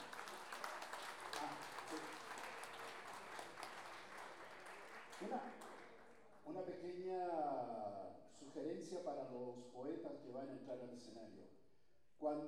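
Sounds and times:
audience applause: 0:00.0 - 0:06.3
speech: 0:05.2 - 0:05.7, 0:06.5 - 0:11.6, 0:12.2 - 0:12.4.

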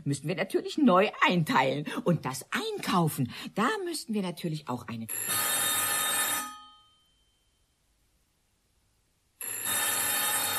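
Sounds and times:
speech: 0:00.1 - 0:05.7
telephone extension bell ringing: 0:05.1 - 0:07.7, 0:09.4 - 0:10.5.

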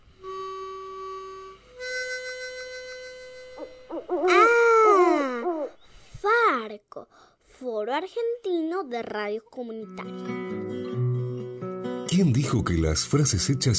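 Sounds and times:
sustained electronic tone: 0:02.4 - 0:04.4
owl hooting: 0:03.6 - 0:06.1
speech: 0:03.9 - 0:04.4, 0:07.0 - 0:11.0, 0:12.2 - 0:13.7.

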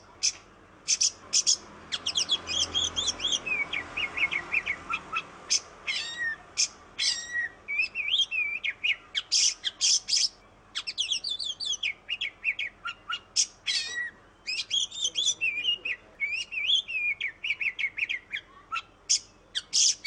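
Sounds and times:
Oriental magpie-robin singing whistles and chirps: 0:00.2 - 0:20.0.

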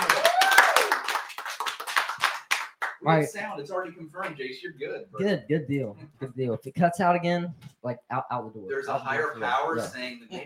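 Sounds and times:
small group applauding: 0:00.0 - 0:03.1
speech: 0:03.0 - 0:10.4.

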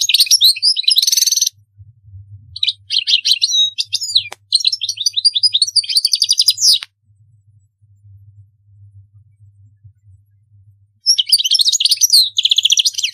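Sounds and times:
European goldfinch singing: 0:00.0 - 0:01.5, 0:02.6 - 0:06.9, 0:11.0 - 0:13.1.

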